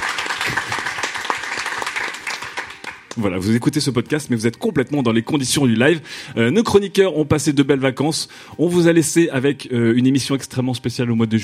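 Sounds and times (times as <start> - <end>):
live audience applause: 0.0 - 3.2
speech: 3.2 - 11.4.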